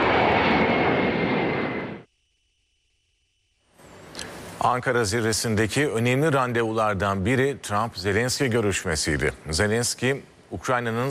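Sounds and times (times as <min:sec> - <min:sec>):
presidential jet aircraft departing airport: 0:00.0 - 0:02.1
speech: 0:04.6 - 0:11.1.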